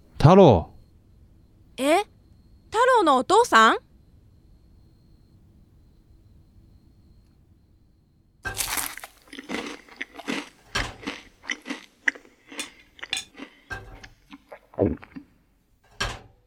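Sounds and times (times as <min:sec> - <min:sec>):
speech: 0:00.2 - 0:00.7, 0:01.8 - 0:02.1, 0:03.0 - 0:03.9, 0:14.8 - 0:15.1
boy crunching and chewing meat: 0:08.5 - 0:15.4.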